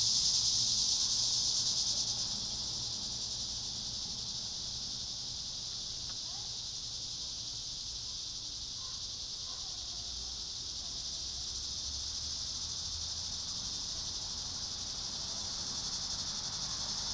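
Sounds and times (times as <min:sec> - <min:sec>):
cicadas droning: 0:00.0 - 0:17.1.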